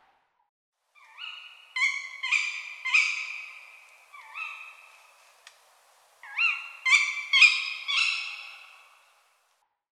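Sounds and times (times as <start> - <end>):
tawny owl hooting: 1.0 - 5.1, 6.2 - 9.0
birds calling: 1.0 - 5.3, 6.2 - 9.2.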